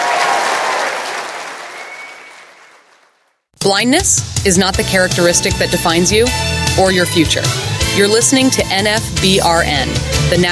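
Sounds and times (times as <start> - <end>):
audience applause: 0.0 - 3.2
speech: 3.6 - 10.5.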